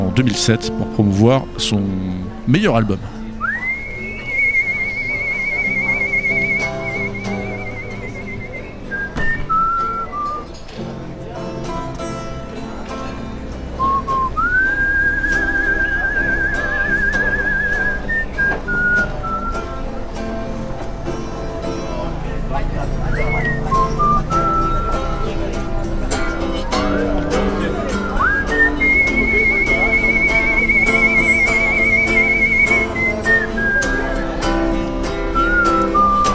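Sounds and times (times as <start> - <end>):
steady instrumental backing: 0.0 - 36.3
speech: 0.2 - 3.2
musician whistling a melody: 3.4 - 10.5, 13.8 - 19.7, 23.1 - 25.5, 27.8 - 34.6, 35.4 - 36.3.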